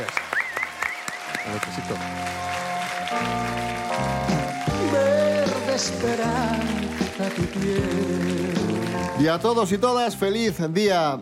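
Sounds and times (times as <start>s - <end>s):
applause: 0.0s - 10.2s
speech: 1.5s - 5.1s, 5.8s - 11.2s.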